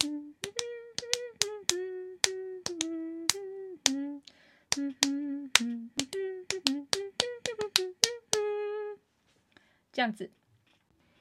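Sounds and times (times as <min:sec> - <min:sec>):
hand clapping keeping rhythm: 0:00.0 - 0:08.5
speech: 0:10.0 - 0:10.4.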